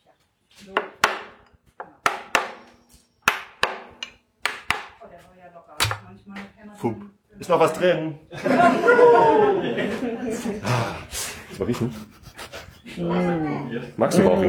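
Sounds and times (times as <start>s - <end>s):
speech: 0.6s - 1.0s, 6.3s - 12.1s, 13.0s - 14.4s
hammer knocking side of wooden barrel to loosen bung: 2.1s - 2.7s, 3.3s - 5.0s, 5.8s - 6.2s
laughter: 8.3s - 11.0s.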